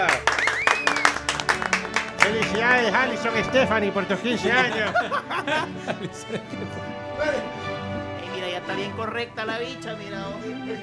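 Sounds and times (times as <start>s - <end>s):
quinceañera guests clapping: 0.0s - 3.4s, 4.4s - 5.1s
laughter: 0.5s - 8.1s
speech: 2.8s - 7.6s, 8.7s - 10.8s.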